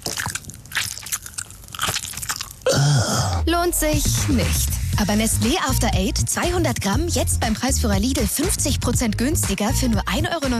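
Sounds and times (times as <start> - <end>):
crunching on a peppermint tea bag: 0.0 - 2.9
speech: 3.4 - 10.5.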